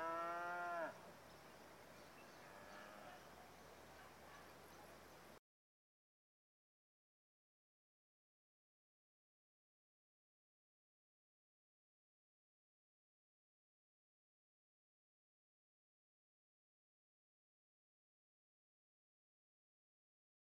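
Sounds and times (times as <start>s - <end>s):
cows in the countryside at dusk: 0.0s - 1.0s, 2.3s - 3.3s
river in the background: 1.0s - 2.3s, 3.2s - 5.4s
distant dogs in the countryside at dusk: 3.0s - 5.0s.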